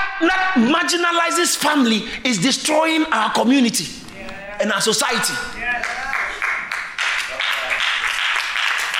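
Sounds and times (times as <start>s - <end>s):
speech: 0.2s - 6.0s
audience clapping: 5.4s - 8.9s.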